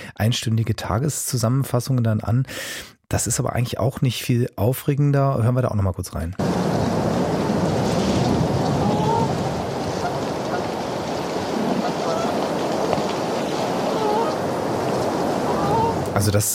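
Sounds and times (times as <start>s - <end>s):
speech: 0.2s - 6.9s, 16.2s - 16.5s
wind blowing outdoors: 6.4s - 16.5s.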